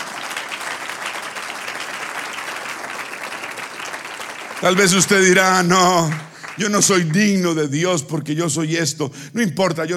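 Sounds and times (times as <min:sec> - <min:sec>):
audience applause: 0:00.0 - 0:07.4
speech: 0:04.6 - 0:09.9.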